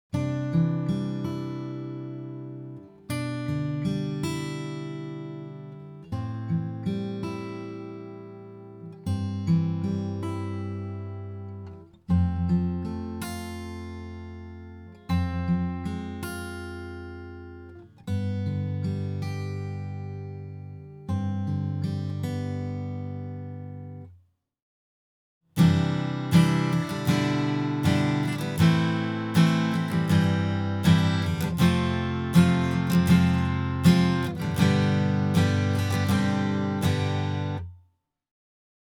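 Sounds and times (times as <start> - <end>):
guitar: 0.0 - 24.2, 25.6 - 37.8.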